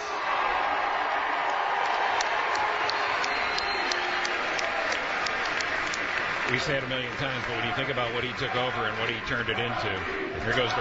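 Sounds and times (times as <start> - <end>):
large arena crowd roaring and applauding: 0.0 - 10.7
sharp claps: 1.4 - 9.5
speech: 6.5 - 10.7.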